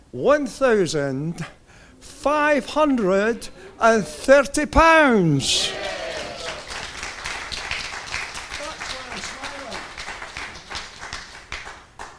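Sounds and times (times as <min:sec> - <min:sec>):
speech: 0:00.1 - 0:06.0
audience cheering: 0:05.0 - 0:10.6
applause: 0:05.6 - 0:12.1.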